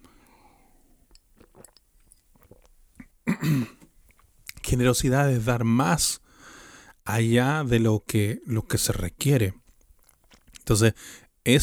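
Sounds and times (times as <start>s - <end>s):
person drinking water: 0.0s - 4.6s, 9.6s - 11.2s
speech: 3.4s - 3.8s, 4.7s - 6.2s, 7.1s - 9.6s, 10.7s - 11.6s.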